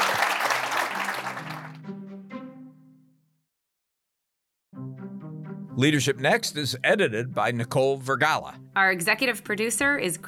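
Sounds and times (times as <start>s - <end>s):
audience applause: 0.0s - 1.8s
speech: 5.8s - 10.2s.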